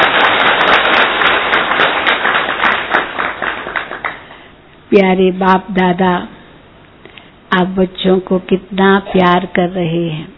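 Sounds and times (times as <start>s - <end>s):
audience clapping loudly: 0.0s - 4.4s
speech: 4.9s - 6.3s, 7.5s - 10.3s.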